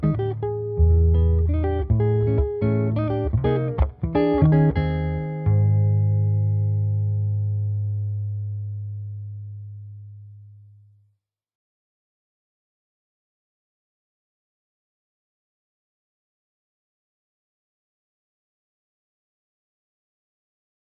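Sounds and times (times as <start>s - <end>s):
guitar cover: 0.0s - 10.4s.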